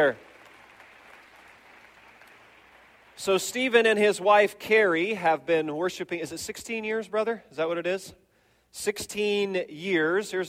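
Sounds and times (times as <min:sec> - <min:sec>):
speech: 0:00.0 - 0:00.3, 0:03.2 - 0:10.4
audience round of applause: 0:00.0 - 0:03.2.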